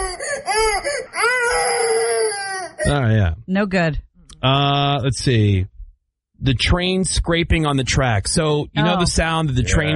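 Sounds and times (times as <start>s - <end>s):
baby crying: 0.0s - 3.1s
speech: 2.9s - 5.7s, 6.4s - 9.9s.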